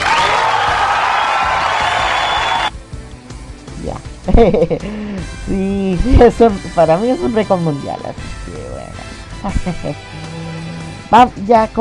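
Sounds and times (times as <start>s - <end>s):
applause: 0.0s - 2.7s
speech: 4.3s - 10.3s, 11.1s - 11.7s.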